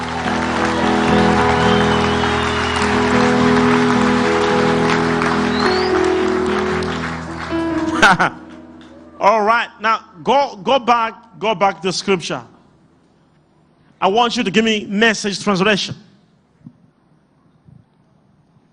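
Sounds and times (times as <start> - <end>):
audience clapping: 0.0 - 9.2
sustained organ-like chords: 0.0 - 12.8
speech: 8.1 - 8.4, 9.2 - 12.5, 14.0 - 16.1.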